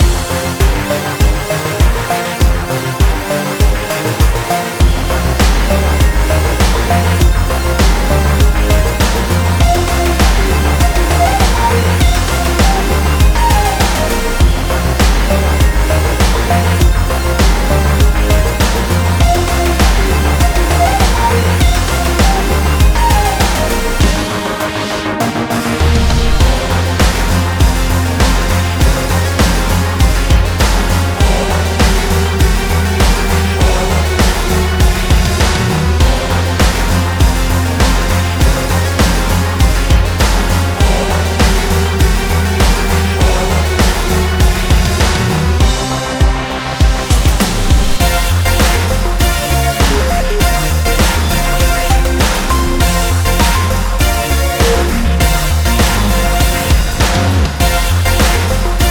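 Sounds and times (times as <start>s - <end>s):
beats: 0.0s - 58.9s.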